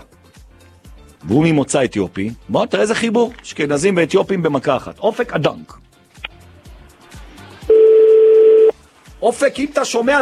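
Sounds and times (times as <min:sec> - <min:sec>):
speech: 0:01.2 - 0:05.8, 0:09.2 - 0:10.2
telephone dial tone: 0:07.7 - 0:08.7.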